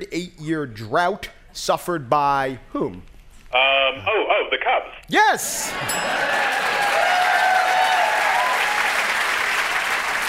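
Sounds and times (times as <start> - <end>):
speech: 0.0 - 7.0
Chicago audience applause: 5.8 - 10.2.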